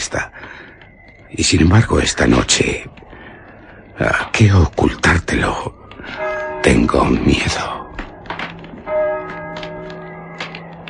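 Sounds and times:
speech: 0.1 - 0.4, 1.3 - 3.0, 4.0 - 7.7
church bells of San Juan del Duero tolling: 5.3 - 10.8.

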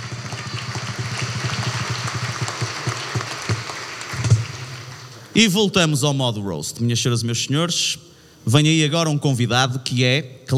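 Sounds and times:
audience applause: 0.0 - 5.4
speech: 5.4 - 10.5.

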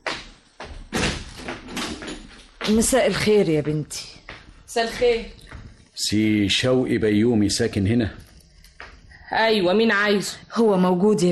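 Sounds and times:
door in a building opening with heavy thuds and rattling: 0.6 - 2.6
speech: 2.6 - 5.4, 6.0 - 8.2, 9.3 - 11.3.

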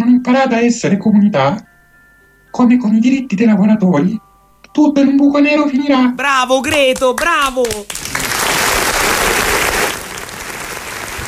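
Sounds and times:
speech: 0.3 - 1.7, 2.5 - 8.2
applause: 6.6 - 11.2.

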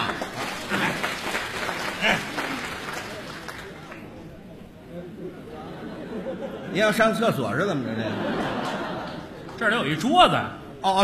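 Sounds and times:
audience applause: 0.0 - 4.2
laughter: 5.0 - 7.0, 7.8 - 9.6
speech: 6.8 - 8.4, 9.6 - 11.0.

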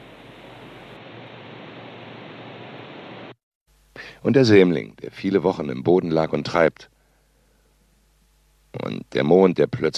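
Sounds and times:
leaves rustling in cold autumn wind: 0.0 - 3.4
speech: 4.2 - 6.9, 8.7 - 9.9.

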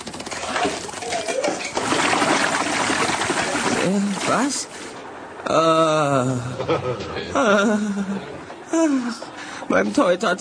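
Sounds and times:
water poured from a bucket: 0.0 - 5.0
speech: 3.9 - 4.9, 5.5 - 10.3
laughter: 6.3 - 9.0.

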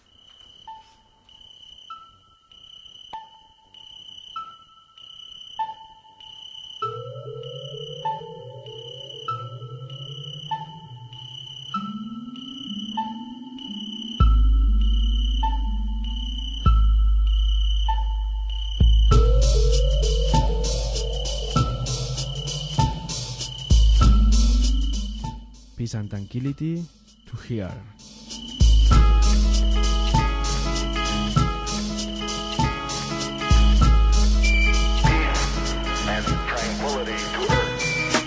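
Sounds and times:
instrumental electronic song with synth blips and heavy bass: 5.6 - 38.2
speech: 25.9 - 28.0.

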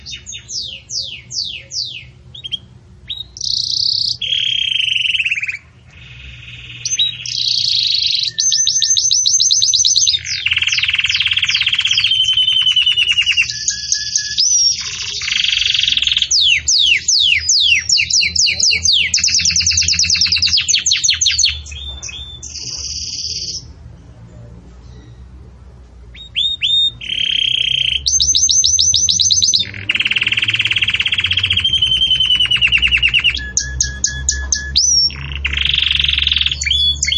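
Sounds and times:
Belgian canary singing: 0.0 - 37.1.

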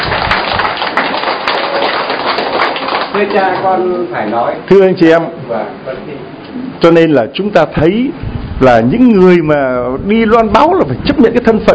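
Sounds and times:
congregation clapping during a church sermon: 0.0 - 3.8
speech: 3.2 - 11.7.

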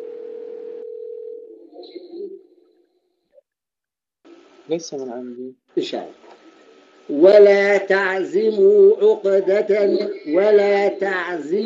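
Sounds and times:
mobile phone ringing tone: 0.0 - 1.7
speech: 4.7 - 6.3, 7.1 - 11.6.

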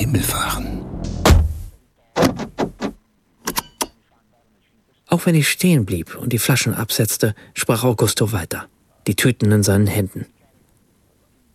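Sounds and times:
speech: 0.1 - 0.8, 5.2 - 10.4
car door being pulled shut: 1.2 - 3.0.

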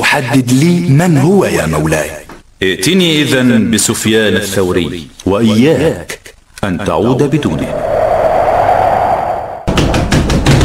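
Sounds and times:
speech: 0.2 - 7.9
low hum: 6.8 - 9.7
heavy knocking on a door: 9.7 - 10.6.

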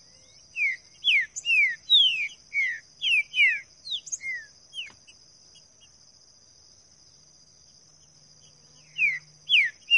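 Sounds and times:
green-winged saltator singing in the bush: 0.0 - 5.1, 8.8 - 9.9.

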